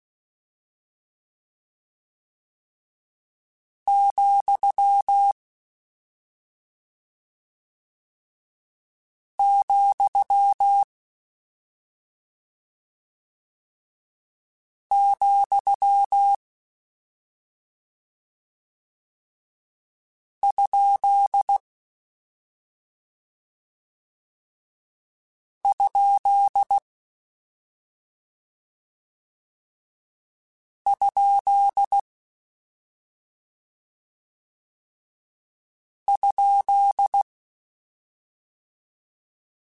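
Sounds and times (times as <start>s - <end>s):
Morse code CW code groups: 3.9s - 5.4s, 9.4s - 10.9s, 14.9s - 16.4s, 20.4s - 21.6s, 25.7s - 26.8s, 30.9s - 32.0s, 36.2s - 37.2s.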